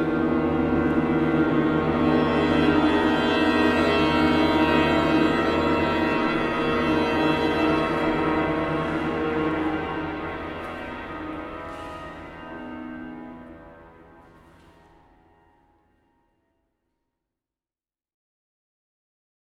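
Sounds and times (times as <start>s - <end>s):
chamber ensemble: 0.0s - 15.5s.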